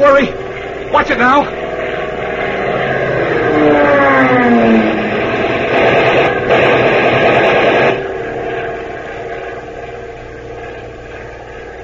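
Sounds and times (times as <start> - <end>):
diving plane engine roaring: 0.0 - 11.8
speech: 1.1 - 1.6
strafing machine-gun fire: 5.2 - 8.3.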